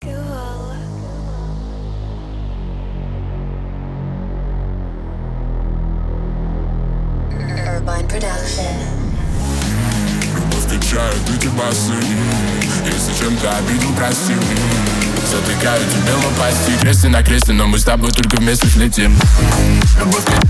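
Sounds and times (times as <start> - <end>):
remix music: 0.0 - 20.4.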